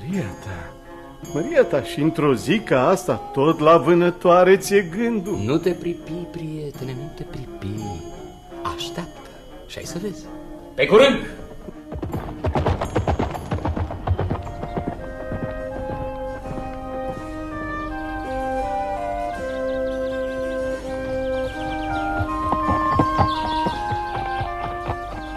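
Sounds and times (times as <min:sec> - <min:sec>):
music of sustained melodic tones: 0:00.0 - 0:11.8, 0:14.7 - 0:25.3
speech: 0:00.1 - 0:11.8
galloping horse hooves in a radio drama: 0:11.4 - 0:25.3.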